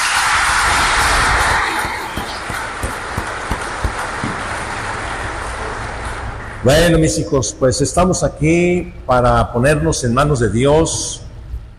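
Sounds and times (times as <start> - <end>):
applause: 0.0 - 5.3
speech: 6.6 - 11.2.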